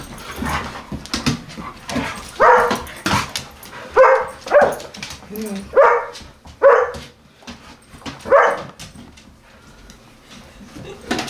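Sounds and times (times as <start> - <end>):
Collie barking: 2.4 - 2.9, 3.9 - 4.9, 5.7 - 7.1, 8.2 - 8.8.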